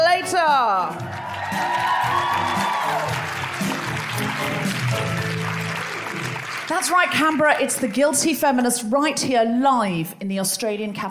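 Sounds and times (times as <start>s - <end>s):
audience applause: 0.9s - 8.1s
speech: 6.7s - 11.1s.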